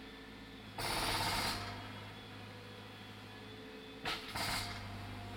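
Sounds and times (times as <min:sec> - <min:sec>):
pneumatic jackhammer: 0:00.8 - 0:02.0, 0:04.0 - 0:05.2.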